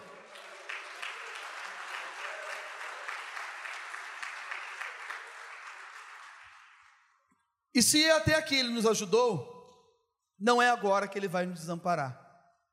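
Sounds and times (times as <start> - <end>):
audience applauding: 0.0 - 7.2
speech: 7.8 - 9.5, 10.4 - 12.2.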